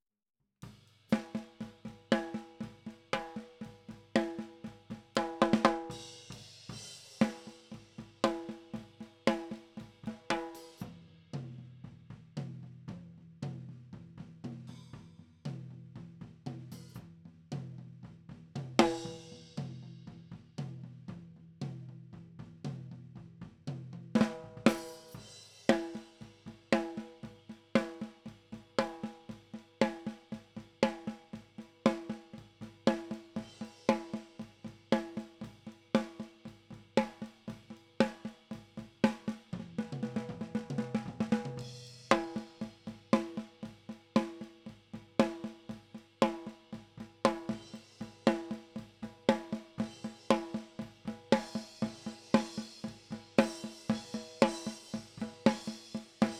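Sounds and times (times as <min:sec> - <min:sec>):
snare drum: 0:00.6 - 0:11.5, 0:18.6 - 0:19.9, 0:23.7 - 0:56.3.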